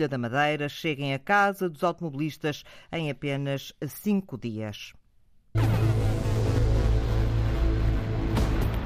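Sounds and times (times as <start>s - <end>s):
speech: 0.0s - 5.9s
stone quarry machinery engine drone: 5.6s - 8.7s.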